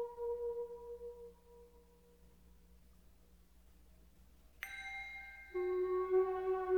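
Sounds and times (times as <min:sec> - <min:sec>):
lullaby music at 432 Hz: 0:04.6 - 0:06.7.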